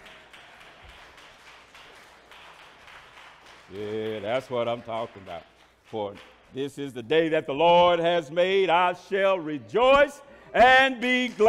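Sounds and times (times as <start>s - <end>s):
audience hand clapping: 0.0s - 7.0s, 10.6s - 11.4s
speech: 3.7s - 11.4s.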